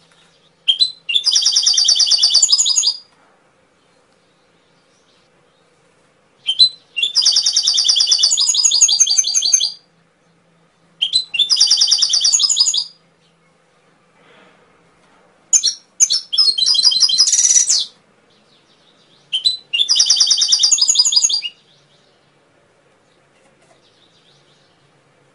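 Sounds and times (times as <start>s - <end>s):
Atlantic canary singing trills: 0.2s - 3.1s, 6.4s - 13.6s, 15.5s - 22.4s, 23.0s - 25.0s.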